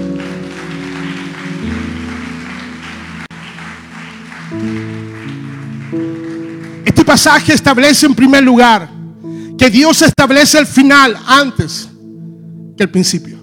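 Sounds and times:
audience applause: 0:00.0 - 0:07.0
speech: 0:07.1 - 0:08.9, 0:09.6 - 0:11.9, 0:12.8 - 0:13.4.

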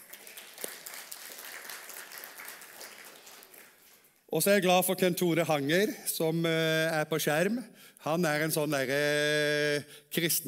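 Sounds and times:
audience applause: 0:00.0 - 0:04.0
speech: 0:04.3 - 0:10.4.

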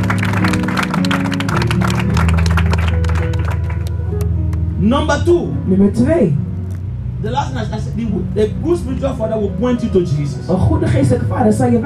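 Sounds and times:
audience clapping: 0:00.0 - 0:04.6
speech: 0:04.9 - 0:06.4, 0:07.2 - 0:11.8.

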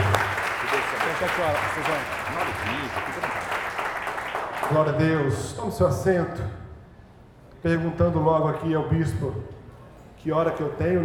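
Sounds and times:
crowd applauding in praise in a large room: 0:00.0 - 0:05.3
speech: 0:01.2 - 0:03.5, 0:04.6 - 0:06.6, 0:07.6 - 0:09.6, 0:10.2 - 0:11.0.

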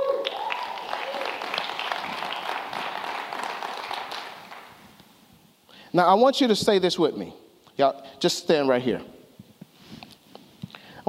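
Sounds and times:
audience hand clapping: 0:00.0 - 0:05.0
speech: 0:06.0 - 0:09.2.

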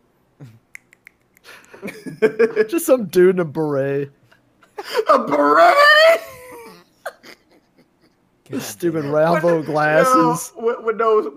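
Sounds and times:
finger snapping: 0:00.7 - 0:01.8
speech: 0:01.8 - 0:04.2, 0:05.1 - 0:06.3, 0:08.5 - 0:11.3
laughter: 0:04.7 - 0:10.5.

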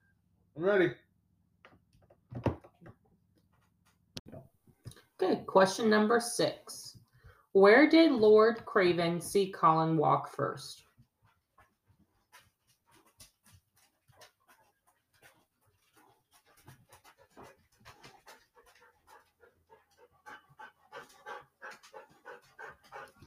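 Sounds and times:
speech: 0:00.6 - 0:01.0, 0:05.2 - 0:07.0, 0:07.6 - 0:10.8
dogs panting: 0:10.8 - 0:23.2.

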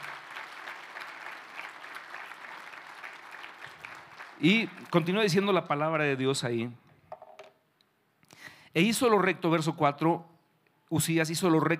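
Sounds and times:
audience applause: 0:00.0 - 0:05.5
speech: 0:04.4 - 0:06.8, 0:08.7 - 0:10.3, 0:10.9 - 0:11.7.

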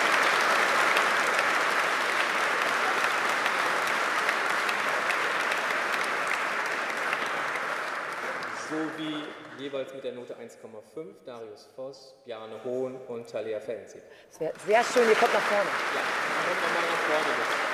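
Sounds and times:
audience applause: 0:00.0 - 0:10.0, 0:14.6 - 0:17.7
speech: 0:08.7 - 0:17.7.

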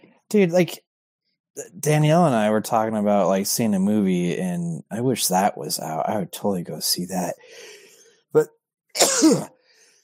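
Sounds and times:
speech: 0:00.3 - 0:00.9, 0:01.6 - 0:09.6
person sneezing: 0:09.0 - 0:09.6.

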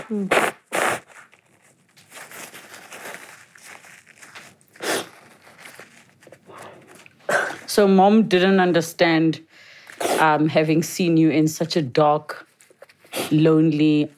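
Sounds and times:
person blowing nose: 0:00.0 - 0:01.4, 0:04.7 - 0:05.5, 0:06.5 - 0:07.7, 0:09.9 - 0:10.3
speech: 0:00.1 - 0:00.6, 0:07.8 - 0:12.5, 0:13.3 - 0:14.1.

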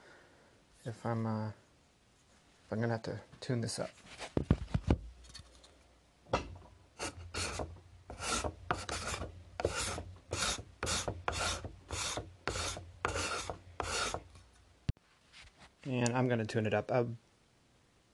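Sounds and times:
speech: 0:00.8 - 0:01.6, 0:02.7 - 0:04.6, 0:16.3 - 0:17.3
untuned card scraper scraping wood: 0:07.0 - 0:14.3.

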